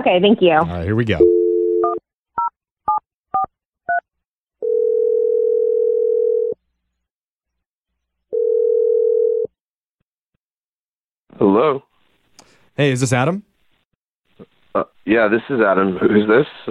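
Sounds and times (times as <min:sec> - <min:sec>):
speech: 0:00.0 - 0:01.9, 0:11.4 - 0:11.9, 0:12.8 - 0:13.5, 0:14.4 - 0:16.6
dial tone: 0:01.2 - 0:02.0, 0:04.6 - 0:06.6, 0:08.3 - 0:09.6.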